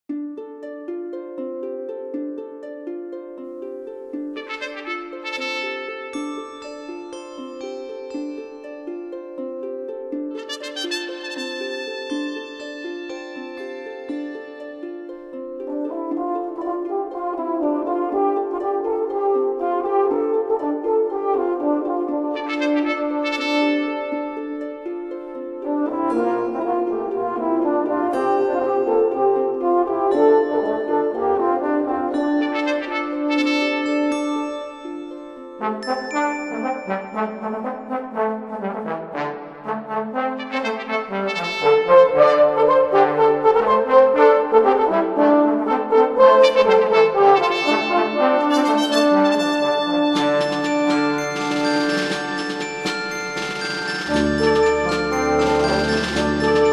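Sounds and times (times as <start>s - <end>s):
brass: 4.3s - 6.4s, 10.3s - 12.6s, 15.7s - 24.7s, 25.6s - 34.6s, 35.6s - 56.7s
morning trumpet: 4.3s - 6.4s, 10.3s - 12.7s, 15.7s - 24.6s, 25.6s - 34.6s, 35.6s - 56.7s.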